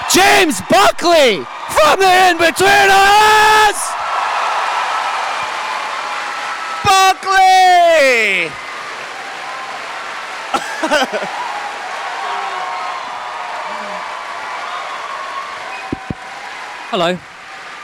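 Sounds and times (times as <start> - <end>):
audience clapping and cheering in a standing ovation: 0.0 - 17.8
speech: 0.4 - 3.9, 6.8 - 8.6, 10.8 - 11.4, 16.9 - 17.3
laughter: 10.5 - 11.4.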